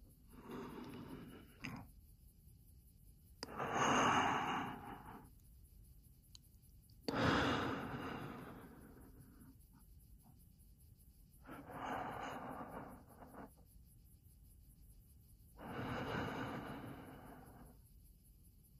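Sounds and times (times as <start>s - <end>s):
person breathing in and exhaling slowly: 0.0s - 1.9s, 3.4s - 5.7s, 7.0s - 10.4s, 11.3s - 14.4s, 15.2s - 18.1s.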